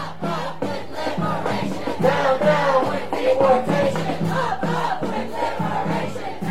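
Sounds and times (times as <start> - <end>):
anti-ICE protesters chanting while marching through Milwaukee streets: 0.0 - 6.5.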